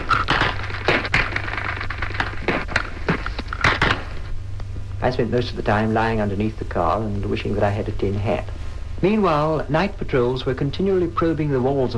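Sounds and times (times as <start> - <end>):
battle gunfire recorded from inside: 0.0 - 4.2
steady low rumble: 0.0 - 11.9
speech: 5.0 - 11.9.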